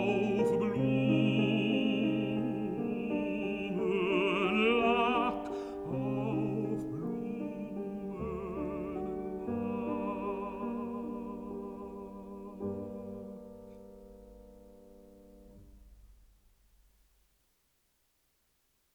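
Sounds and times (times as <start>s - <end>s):
person singing: 0.0s - 13.4s
piano: 0.0s - 17.3s.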